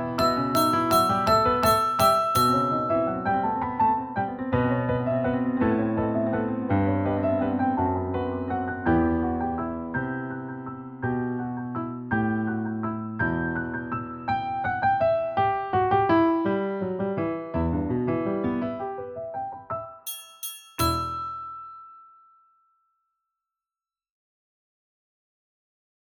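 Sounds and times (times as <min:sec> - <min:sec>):
multi-level piano ensemble: 0:00.0 - 0:19.9.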